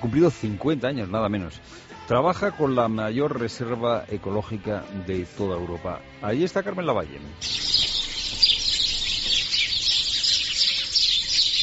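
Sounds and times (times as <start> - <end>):
speech: 0.0 - 7.8
dawn chorus of birds at Doñana nature reserve in Spain: 7.4 - 11.6.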